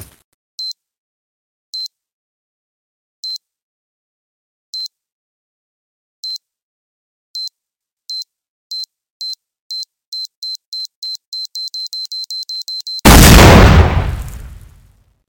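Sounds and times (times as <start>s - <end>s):
C4 bomb explosion: 13.1s - 14.7s.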